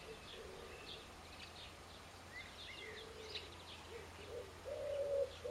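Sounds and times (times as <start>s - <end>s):
bird hooting coo-like notes: 0.1s - 1.0s, 2.9s - 5.4s.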